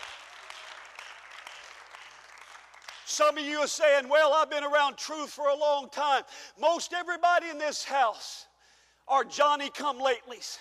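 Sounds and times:
audience clapping: 0:00.0 - 0:03.4
speech: 0:03.1 - 0:08.5, 0:09.1 - 0:10.5.

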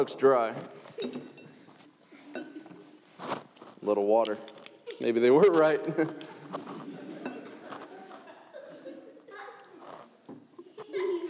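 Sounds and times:
speech: 0:00.0 - 0:01.3, 0:03.8 - 0:06.3
spoon clinking while mixing cake batter: 0:01.0 - 0:02.7, 0:07.1 - 0:08.0
laughter: 0:04.9 - 0:10.0, 0:10.6 - 0:11.2.

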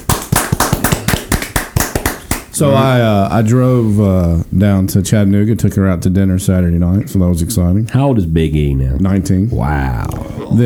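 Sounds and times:
applause: 0:00.0 - 0:02.5
speech: 0:02.6 - 0:10.6.

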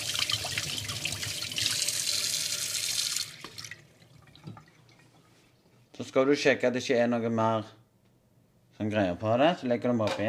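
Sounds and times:
something being rinsed under a running tap: 0:00.0 - 0:05.3
speech: 0:06.0 - 0:07.8, 0:08.8 - 0:10.2.

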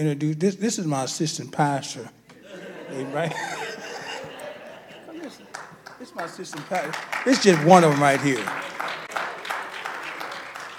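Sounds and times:
speech: 0:00.0 - 0:02.2, 0:02.9 - 0:03.7, 0:06.1 - 0:08.7
laughter: 0:02.3 - 0:10.6
audience applause: 0:05.2 - 0:10.7.

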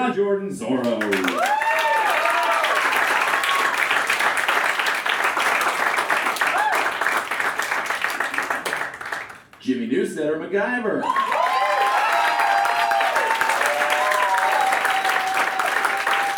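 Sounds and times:
speech: 0:00.0 - 0:01.6, 0:09.7 - 0:11.4
audience applause: 0:01.0 - 0:09.6, 0:11.0 - 0:16.3
cheers and whoops: 0:01.2 - 0:04.0, 0:06.4 - 0:07.1, 0:11.0 - 0:16.3.

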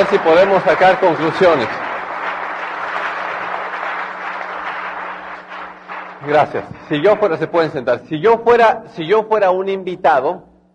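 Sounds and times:
speech: 0:00.0 - 0:01.9, 0:06.3 - 0:10.5
applause: 0:00.0 - 0:07.5.

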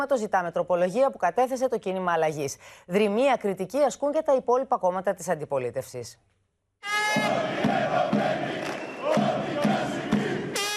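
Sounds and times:
speech: 0:00.0 - 0:08.4
crowd of laid-off workers chanting protest slogans in Kavala: 0:07.1 - 0:10.7.

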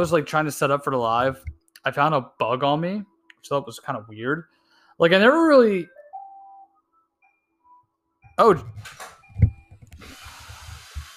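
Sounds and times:
speech: 0:00.0 - 0:06.0, 0:08.4 - 0:09.0
robot vacuum cleaner buzzing: 0:10.0 - 0:11.1.

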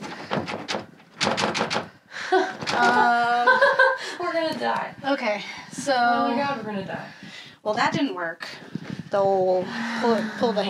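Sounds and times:
loud banging and clattering: 0:00.0 - 0:03.1
laughter: 0:02.3 - 0:04.2
speech: 0:04.7 - 0:10.6.

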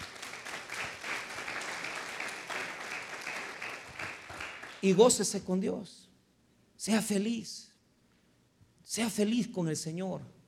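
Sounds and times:
audience applause: 0:00.0 - 0:05.0
speech: 0:04.8 - 0:06.1, 0:06.8 - 0:07.7, 0:08.9 - 0:10.4.

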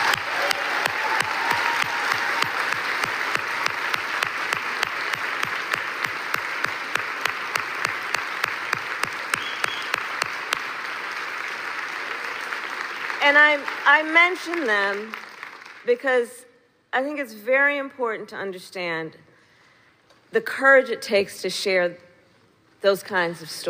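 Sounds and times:
audience applause: 0:00.0 - 0:15.8
speech: 0:13.5 - 0:15.2, 0:15.9 - 0:19.2, 0:20.3 - 0:22.1, 0:22.8 - 0:23.6.

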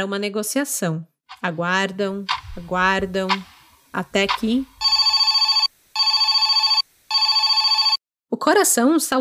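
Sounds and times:
speech: 0:00.0 - 0:04.7, 0:08.4 - 0:09.2
telephone ringing with bell tone: 0:04.3 - 0:08.0.

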